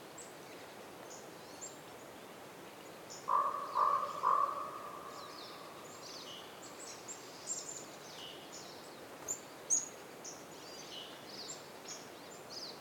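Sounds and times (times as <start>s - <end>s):
raven giving hoarse calls in a winter forest in Canada: 3.3s - 5.8s.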